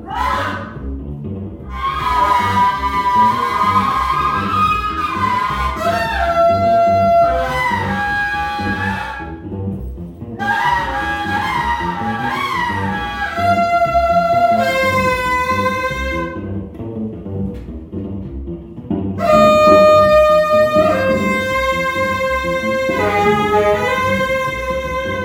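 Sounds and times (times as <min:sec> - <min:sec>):
saxophone: 0:01.7 - 0:09.5, 0:10.4 - 0:16.6, 0:19.2 - 0:25.2.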